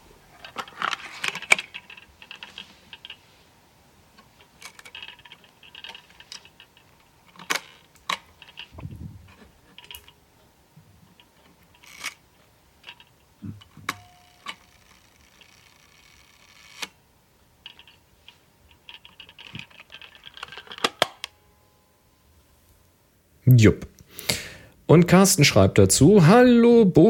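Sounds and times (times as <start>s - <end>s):
Voigtländer Bessa folding camera being unfolded, shutter fired at 1/50 s, folded shut: 0.3s - 3.2s, 4.2s - 10.2s, 11.1s - 12.2s, 12.8s - 17.0s, 17.6s - 21.3s
speech: 23.5s - 23.9s, 24.9s - 27.0s.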